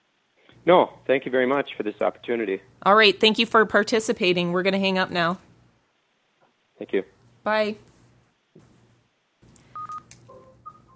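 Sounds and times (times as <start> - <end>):
low hiss: 0.0 - 10.8
speech: 0.6 - 5.5, 6.8 - 7.9
touch-tone DTMF beeps dialing a telephone number: 9.7 - 10.9.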